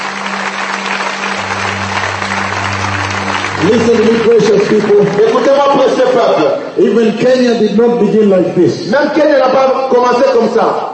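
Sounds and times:
audience clapping to praise the Lord in France: 0.0s - 7.5s
low sustained hum: 1.4s - 5.4s
speech: 3.6s - 10.9s.

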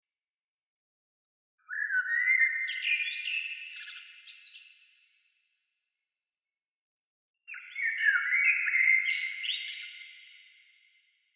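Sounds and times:
bird singing twittering phrases: 1.6s - 5.2s, 7.5s - 10.9s.

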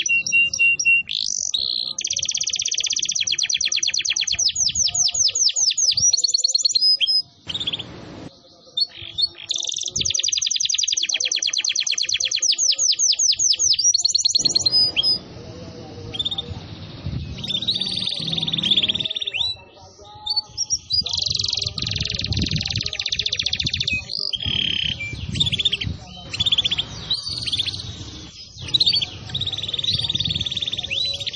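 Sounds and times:
canary song: 0.0s - 31.3s.

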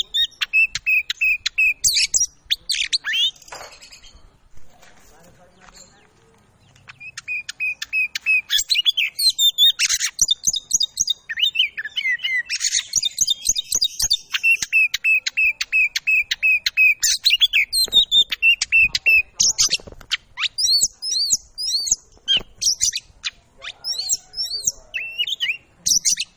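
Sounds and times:
Oriental magpie-robin song: 0.0s - 26.3s.

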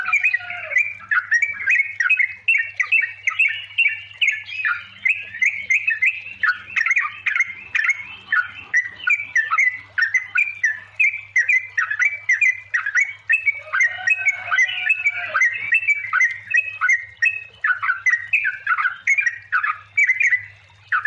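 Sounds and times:
yellow-vented bulbul song: 0.0s - 21.0s.

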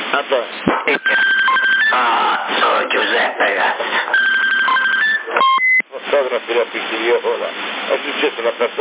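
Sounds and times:
speech: 0.1s - 4.4s, 6.2s - 8.7s
telephone ringing or dialing tones: 1.0s - 2.0s, 4.1s - 5.8s
murmuring voices: 1.9s - 4.2s.

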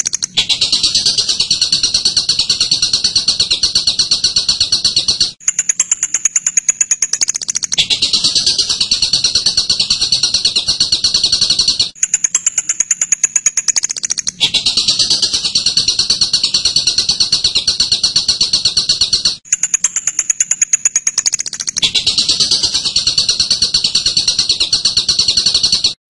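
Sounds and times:
songbird buzzy trilling song: 0.0s - 26.0s.

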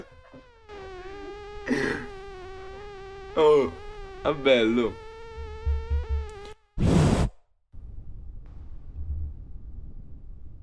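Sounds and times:
thin high-pitched mosquito buzzing: 0.0s - 6.9s
speech: 3.4s - 5.0s.

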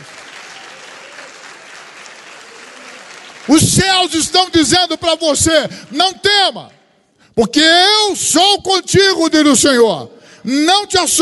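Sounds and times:
congregation clapping in worship at a Methodist cathedral: 0.0s - 6.0s
speech: 3.4s - 6.8s, 7.4s - 11.1s.

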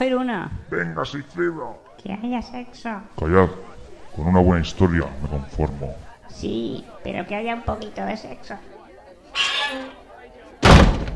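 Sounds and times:
speech: 0.0s - 8.7s
murmuring: 0.0s - 10.6s
door slamming shut: 10.6s - 11.1s.

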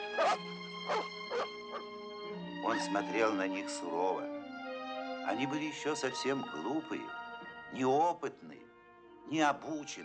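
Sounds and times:
newly arrived puppies sniffing at an old dog in a dog kennel: 0.2s - 1.9s
speech: 2.8s - 4.4s, 5.3s - 8.7s, 9.3s - 10.0s.

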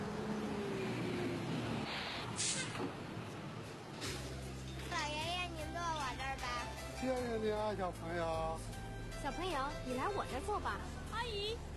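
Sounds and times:
route 5 city bus pulling into a stop: 0.0s - 4.9s
street noise: 0.0s - 11.7s
city bus air brakes hissing: 1.9s - 2.9s
speech: 7.0s - 11.7s.

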